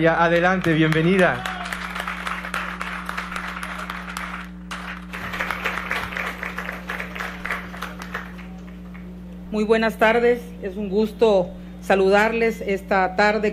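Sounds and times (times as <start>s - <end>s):
speech: 0.0s - 1.5s, 9.5s - 13.5s
audience applause: 0.3s - 9.1s.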